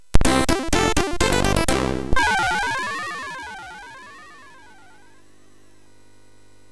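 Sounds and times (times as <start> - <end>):
MOS6581 chip music score: 0.2 - 5.2.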